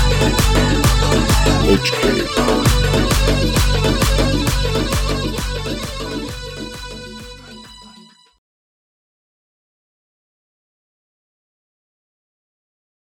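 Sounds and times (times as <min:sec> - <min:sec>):
tribal music: 0:00.0 - 0:07.9.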